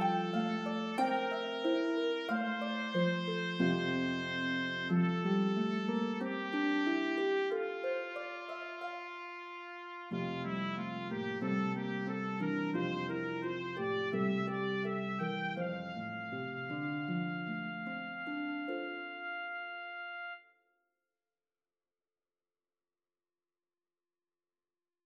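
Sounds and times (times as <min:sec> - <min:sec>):
harp melody: 0:00.0 - 0:19.7
trumpet: 0:00.0 - 0:20.6.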